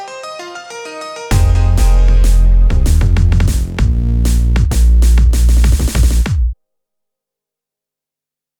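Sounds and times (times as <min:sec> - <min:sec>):
instrumental music: 0:00.0 - 0:06.6.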